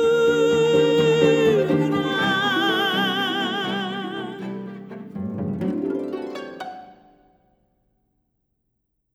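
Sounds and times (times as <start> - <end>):
Italian folk dance music: 0.0 - 7.2.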